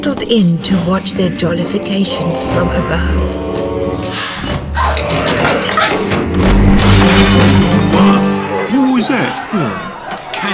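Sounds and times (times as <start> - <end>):
speech: 0.0 - 4.3, 9.0 - 10.5
candle knocked down from a chandelier clattering and shattering: 2.3 - 8.2.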